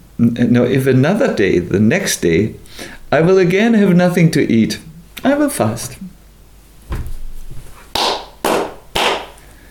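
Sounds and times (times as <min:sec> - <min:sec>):
speech: 0:00.2 - 0:06.1
dull low thump: 0:06.8 - 0:07.7
hand claps: 0:07.9 - 0:09.4.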